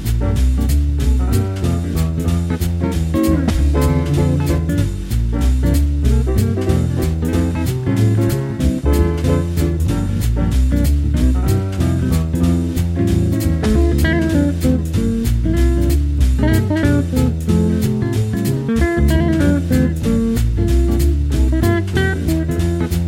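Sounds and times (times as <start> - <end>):
fast swing jazz at 432 Hz: 0.0 - 23.0.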